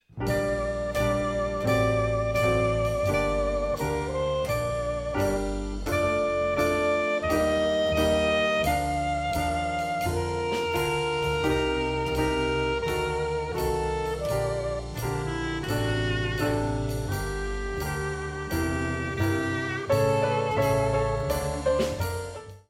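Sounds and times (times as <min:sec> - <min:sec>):
blues music: 0:00.0 - 0:22.6.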